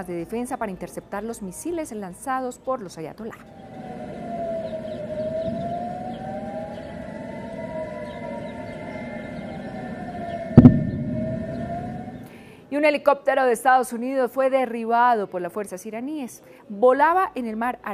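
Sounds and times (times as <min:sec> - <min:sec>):
speech: 0:00.0 - 0:04.0, 0:12.7 - 0:17.9
air raid sirens in Jerusalén: 0:03.4 - 0:12.5.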